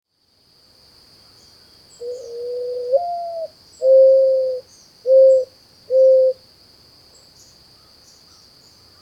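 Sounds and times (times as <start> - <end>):
mourning dove giving a soft rising-then-falling coo: 2.0 - 6.4.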